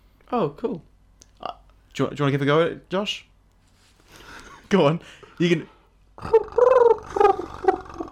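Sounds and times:
speech: 0.3s - 3.3s, 4.1s - 7.8s
person imitating pigeon trill: 6.2s - 8.1s.

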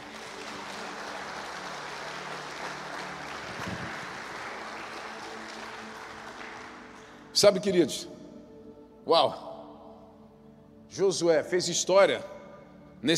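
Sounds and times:
audience applause: 0.0s - 7.1s
speech: 7.4s - 8.2s, 9.1s - 9.5s, 11.0s - 12.4s, 13.0s - 13.1s.

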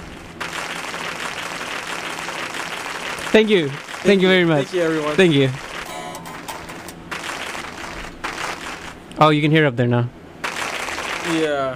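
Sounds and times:
pre-recorded clap track applause: 0.4s - 5.9s, 6.5s - 9.0s, 10.4s - 11.5s
speech: 3.3s - 5.7s, 9.2s - 10.2s, 11.3s - 11.7s.

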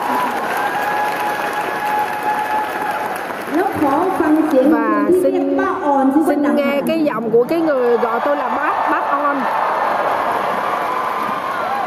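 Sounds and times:
audience applause: 0.0s - 5.0s, 7.8s - 11.8s
speech: 4.6s - 9.7s.

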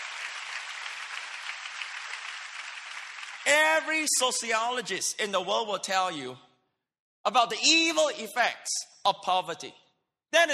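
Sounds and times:
crowd clapping: 0.0s - 4.3s
speech: 3.4s - 6.5s, 7.2s - 10.5s.

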